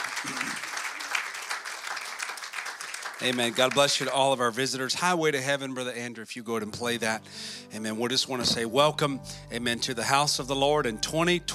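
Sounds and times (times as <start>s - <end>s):
audience applause: 0.0s - 4.4s
speech: 3.2s - 11.5s.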